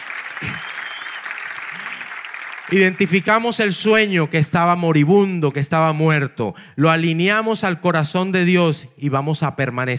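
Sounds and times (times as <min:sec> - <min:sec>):
loud audience applause: 0:00.0 - 0:03.4
speech: 0:02.7 - 0:09.9.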